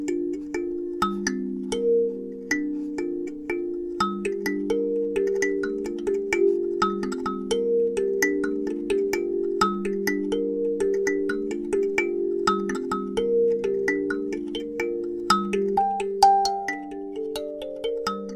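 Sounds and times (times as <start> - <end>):
alto kalimba in G minor: 0.0 - 18.3.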